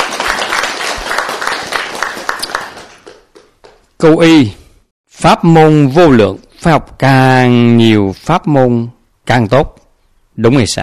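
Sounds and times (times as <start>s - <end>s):
audience applauding fellow practitioners at a Buddhist gathering: 0.0s - 3.9s
speech: 4.0s - 4.6s, 5.2s - 9.8s, 10.4s - 10.8s.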